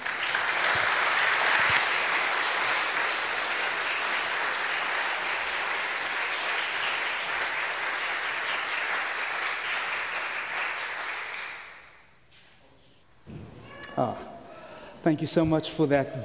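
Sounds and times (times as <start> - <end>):
large crowd applauding: 0.0 - 12.0
speech: 14.0 - 14.3, 15.0 - 16.2.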